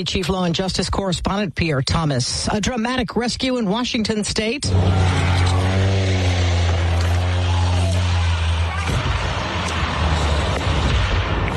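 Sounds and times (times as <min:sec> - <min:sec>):
speech: 0:00.0 - 0:05.4
small plane engine droning: 0:04.6 - 0:10.8
rough rushing noise: 0:04.6 - 0:11.5.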